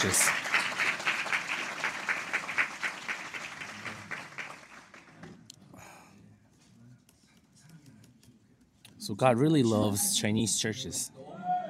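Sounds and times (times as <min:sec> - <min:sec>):
speech: 0:00.0 - 0:00.4, 0:09.1 - 0:11.2
audience applause: 0:00.0 - 0:05.3.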